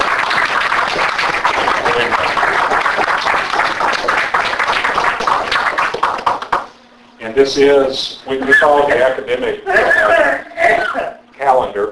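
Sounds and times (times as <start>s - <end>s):
audience applause: 0.0s - 6.7s
speech: 7.4s - 10.4s.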